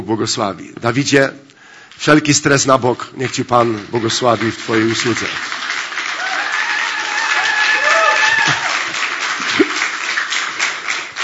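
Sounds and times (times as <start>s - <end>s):
speech: 0.0s - 5.6s
crowd applause: 3.3s - 11.2s
crowd cheering and whooping: 6.0s - 9.8s.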